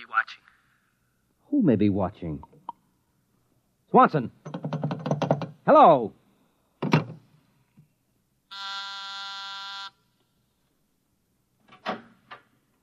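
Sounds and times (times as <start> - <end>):
speech: 1.5 - 2.5, 3.9 - 4.6, 5.7 - 6.2
clattering knocks: 4.4 - 5.6, 6.8 - 7.2
intercom buzzer: 8.5 - 10.0.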